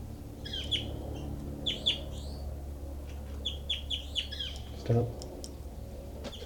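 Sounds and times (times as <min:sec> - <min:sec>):
steady low hum: 0:00.0 - 0:06.2
recorded high-pitched bird chirps: 0:00.4 - 0:00.9, 0:01.6 - 0:02.4, 0:03.4 - 0:04.7
speech: 0:04.9 - 0:05.2.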